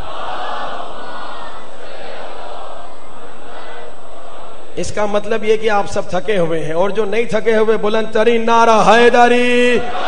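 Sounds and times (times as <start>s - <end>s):
crowd loudly reciting salawat at a gathering: 0.0s - 4.8s, 9.8s - 10.0s
speech: 4.8s - 10.0s.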